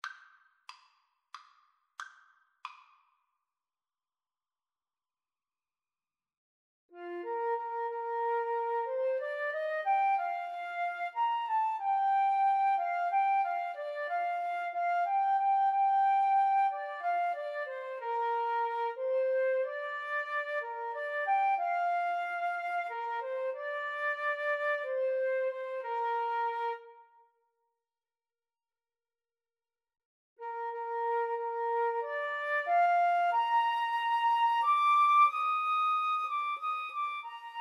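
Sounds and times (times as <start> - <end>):
two flutes playing karaoke backing: 7.0 - 27.2, 30.4 - 37.6.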